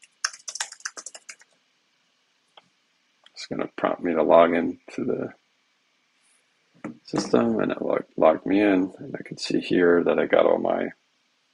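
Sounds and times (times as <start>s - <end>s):
fast keystrokes on a computer keyboard: 0.0s - 1.5s
speech: 3.5s - 5.4s, 7.1s - 11.0s.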